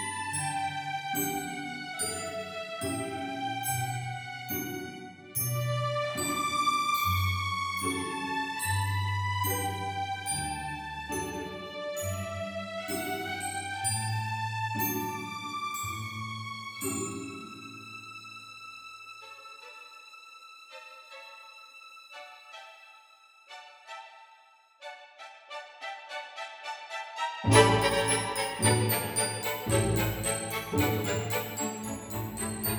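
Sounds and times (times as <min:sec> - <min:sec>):
glockenspiel: 0:00.0 - 0:18.3, 0:27.5 - 0:32.7.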